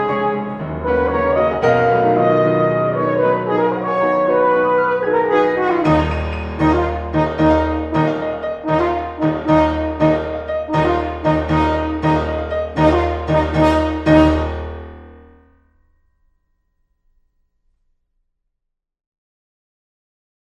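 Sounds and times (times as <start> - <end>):
horn sonata: 0.0 - 15.4.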